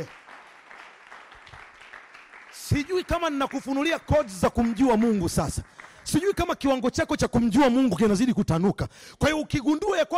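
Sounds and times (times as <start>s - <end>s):
speech: 0.0s - 0.2s, 2.7s - 10.1s
church congregation clapping during a sermon: 0.0s - 6.9s.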